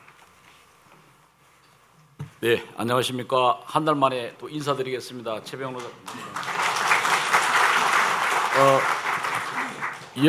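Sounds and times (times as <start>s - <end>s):
speech: 2.4s - 6.5s, 8.6s - 9.0s
audience applause: 5.8s - 10.2s.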